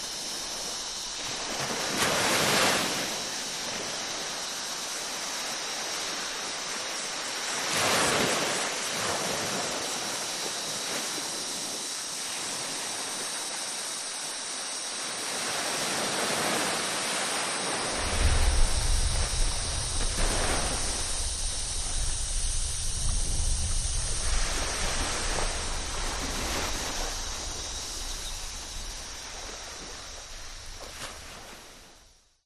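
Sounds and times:
ocean waves on a tropical beach: 0.0s - 32.2s
insects: 0.0s - 32.4s
distant thunderstorm: 17.9s - 30.9s.

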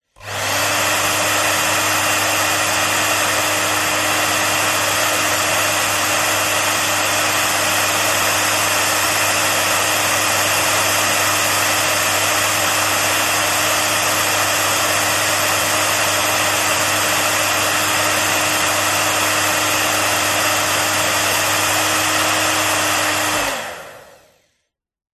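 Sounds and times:
household hairdryer running: 0.0s - 24.6s.

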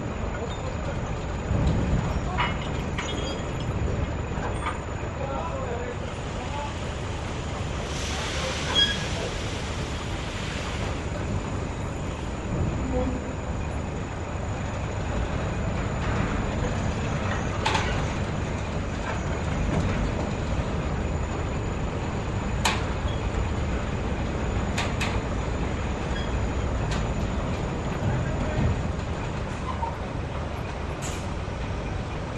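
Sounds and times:
industrial port ambience: 0.0s - 32.3s.

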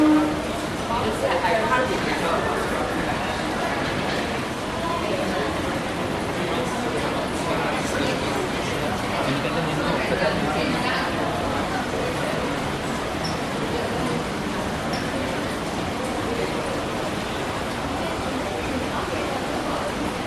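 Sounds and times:
people in a busy mall food court: 0.0s - 20.2s.

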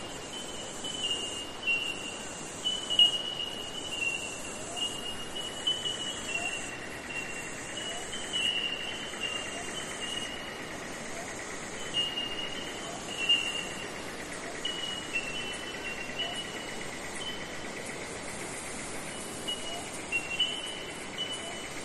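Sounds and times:
Bell Miner tink calls: 0.2s - 21.8s.

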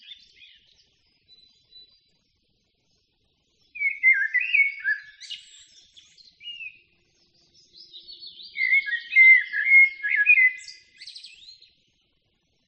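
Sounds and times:
common blackbird singing in a forest: 0.0s - 1.8s, 3.7s - 11.8s.

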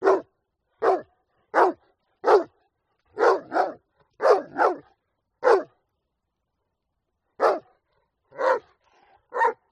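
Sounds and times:
dog giving sharp short barks: 0.0s - 2.6s, 3.2s - 5.7s, 7.4s - 7.7s, 8.3s - 8.7s, 9.3s - 9.6s.

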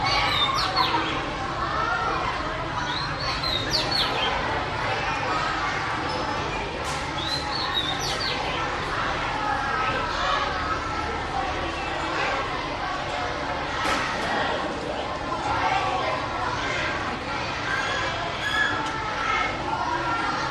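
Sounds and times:
busy school playground with kids in Vietnam: 0.0s - 20.5s.

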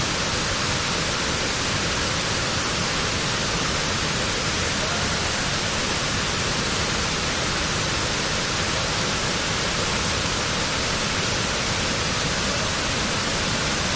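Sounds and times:
waterfall: 0.0s - 13.9s
people chatting: 4.6s - 6.0s, 12.2s - 13.9s.

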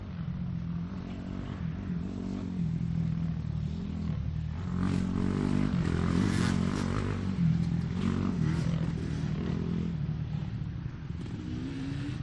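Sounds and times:
motocross motorcycles passing in a race: 0.0s - 12.2s.

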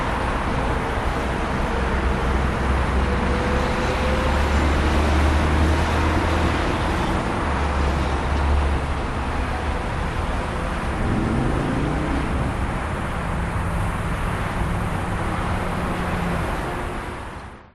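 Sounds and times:
interstate highway traffic in Las Vegas: 0.0s - 17.6s.

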